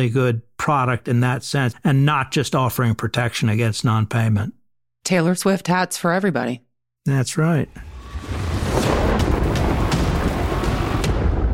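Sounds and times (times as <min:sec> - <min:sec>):
speech: 0:00.0 - 0:08.4
thunder sound effect: 0:07.7 - 0:11.5.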